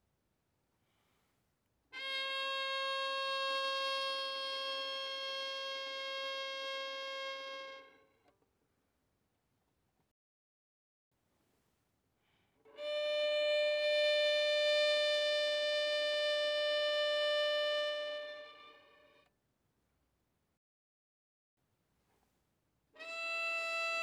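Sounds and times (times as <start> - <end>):
violin played arco fortissimo on the D string: 2.0 - 8.0, 12.8 - 19.2, 23.0 - 24.0.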